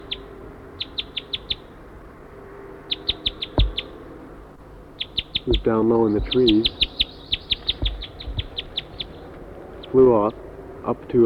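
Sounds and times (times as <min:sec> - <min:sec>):
wild bird calling loudly: 0:00.0 - 0:01.7, 0:02.9 - 0:04.0, 0:05.0 - 0:10.0
low hum: 0:00.0 - 0:11.2
speech: 0:05.5 - 0:06.8, 0:09.9 - 0:11.2.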